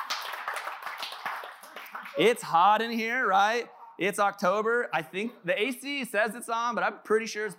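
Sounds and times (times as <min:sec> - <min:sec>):
audience clapping: 0:00.0 - 0:02.6
speech: 0:02.2 - 0:07.5.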